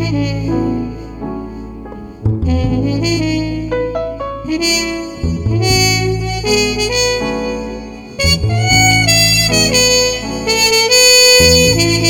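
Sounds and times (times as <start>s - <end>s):
soothing trumpet combo music without drums: 0.0s - 12.0s.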